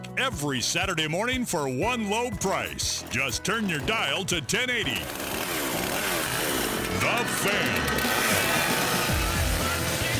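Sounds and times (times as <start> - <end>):
speech: 0.2 - 5.4, 7.0 - 8.2
chainsaw engine starting up and revving: 3.0 - 10.1.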